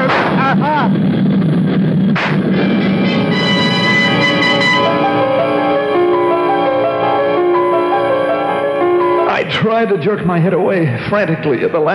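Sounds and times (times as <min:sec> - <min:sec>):
gunshot: 0:00.0 - 0:00.5, 0:02.1 - 0:02.7
loud steady droning roar: 0:00.0 - 0:10.2
speech: 0:09.7 - 0:11.9.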